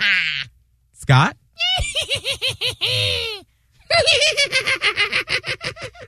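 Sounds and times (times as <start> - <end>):
speech: 1.1 - 1.4, 4.0 - 6.0
person imitating a witch's cackle: 1.6 - 6.0.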